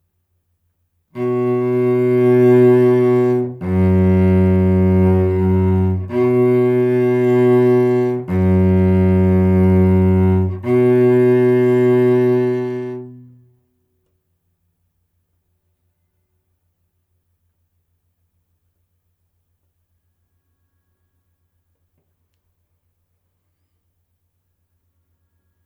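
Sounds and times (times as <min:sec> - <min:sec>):
baroque second movement single part E: 0:01.2 - 0:13.4.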